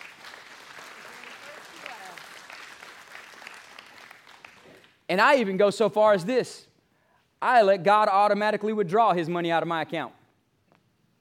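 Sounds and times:
audience clapping: 0:00.0 - 0:05.1
speech: 0:05.1 - 0:06.7, 0:07.4 - 0:10.2.

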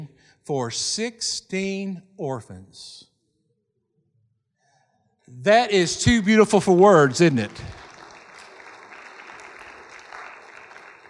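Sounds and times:
speech: 0:00.4 - 0:03.1, 0:05.3 - 0:07.8
scattered half-hearted audience applause: 0:06.1 - 0:11.0.

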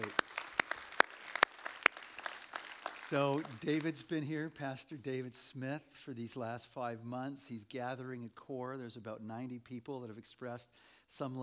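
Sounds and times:
audience clapping: 0:00.0 - 0:04.6
speech: 0:03.1 - 0:11.4.

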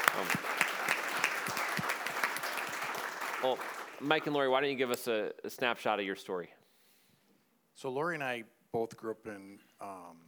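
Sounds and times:
audience applause: 0:00.0 - 0:04.8
speech: 0:03.4 - 0:06.6, 0:07.8 - 0:10.2.

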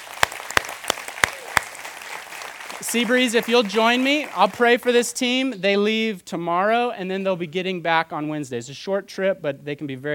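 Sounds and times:
audience applause: 0:00.0 - 0:05.1
speech: 0:02.8 - 0:10.1.

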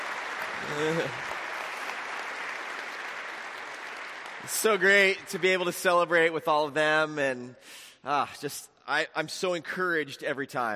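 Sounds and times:
applause: 0:00.0 - 0:06.4
speech: 0:00.6 - 0:01.3, 0:04.4 - 0:10.7
laughter: 0:00.6 - 0:01.4.

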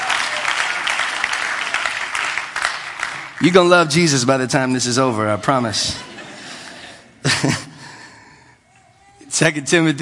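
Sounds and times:
audience clapping: 0:00.0 - 0:04.1
speech: 0:03.4 - 0:06.1, 0:07.4 - 0:07.7, 0:09.4 - 0:09.9
laughter: 0:05.2 - 0:07.9.

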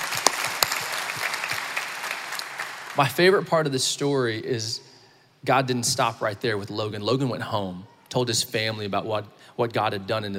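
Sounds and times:
audience applause: 0:00.0 - 0:03.0
speech: 0:03.0 - 0:10.3.

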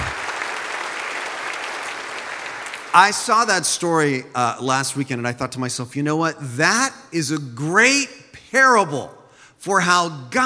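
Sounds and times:
audience applause: 0:00.0 - 0:03.3
speech: 0:02.9 - 0:10.4.

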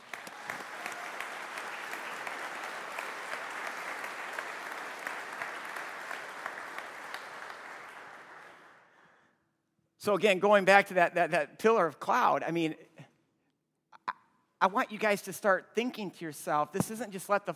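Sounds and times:
large crowd clapping: 0:00.0 - 0:08.9
speech: 0:10.0 - 0:12.8, 0:14.6 - 0:17.5.

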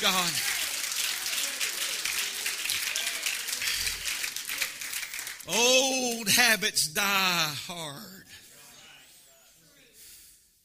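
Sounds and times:
speech: 0:00.0 - 0:00.6, 0:05.5 - 0:08.2
audience clapping hands: 0:00.0 - 0:06.8.

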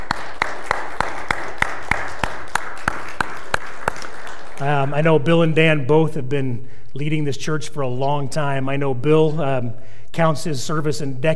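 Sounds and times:
audience applause: 0:00.0 - 0:05.0
sharp evenly spaced claps: 0:00.0 - 0:05.1
speech: 0:04.6 - 0:11.3.

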